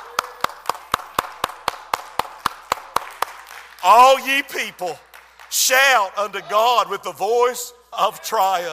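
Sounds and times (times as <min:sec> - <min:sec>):
church congregation clapping hands in rhythm during a sermon: 0:00.0 - 0:06.2
speech: 0:03.8 - 0:08.7.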